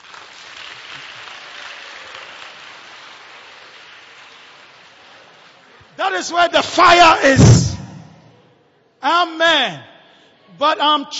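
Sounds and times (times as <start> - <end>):
audience clapping: 0.0 - 6.2
speech: 6.0 - 7.7, 9.3 - 9.9, 10.6 - 11.1.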